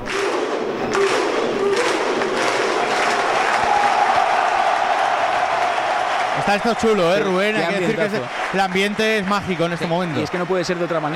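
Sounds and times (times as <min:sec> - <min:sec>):
football fans' Viking war chant: 0:00.0 - 0:06.4
speech: 0:06.5 - 0:11.1.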